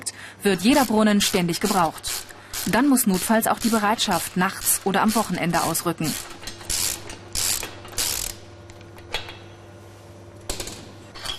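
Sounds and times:
steady low mechanical hum: 0.0s - 11.3s
speech: 0.4s - 6.4s
ratcheting tools on a compressor cylinder head: 0.6s - 8.4s.

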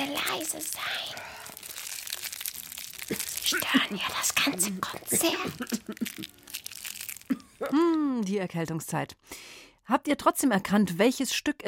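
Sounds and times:
candy wrapper crinkling: 0.0s - 8.4s
speech: 0.4s - 1.5s, 3.1s - 6.5s, 7.3s - 11.6s.

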